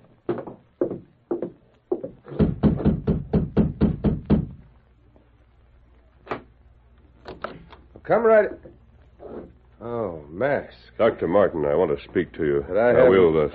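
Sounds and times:
knocking on a door: 0.3s - 4.6s
speech: 8.1s - 8.7s, 9.9s - 13.5s.

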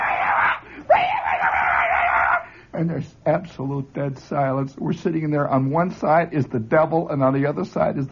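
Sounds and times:
voice imitating a boy yelling far away: 0.0s - 2.5s
speech: 2.8s - 8.1s.

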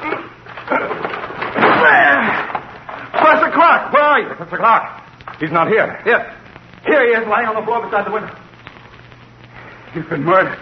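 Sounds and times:
door forced open by people throwing shoulders against it: 0.5s - 2.7s
speech: 3.6s - 8.4s, 10.0s - 10.6s.

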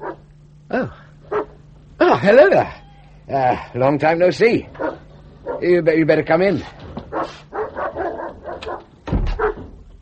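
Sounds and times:
dog barking: 0.0s - 0.3s, 1.3s - 1.6s, 4.8s - 5.7s, 7.1s - 9.7s
speech: 0.7s - 1.0s, 2.2s - 4.8s, 5.6s - 7.4s.

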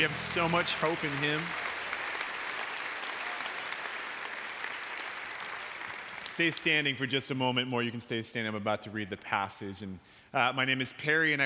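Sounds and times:
speech: 0.0s - 1.7s, 6.4s - 11.4s
audience applause: 0.0s - 6.6s.

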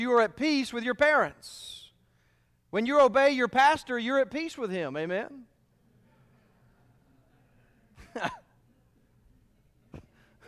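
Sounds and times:
speech: 0.0s - 1.8s, 2.7s - 5.5s, 8.2s - 8.4s
audience coughing: 9.9s - 10.4s.

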